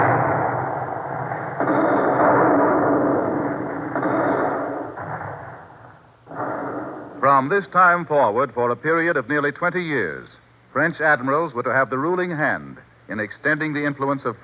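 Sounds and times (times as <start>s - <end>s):
naval fleet gunfire bombarding forts: 0.0s - 7.4s
speech: 7.4s - 14.4s.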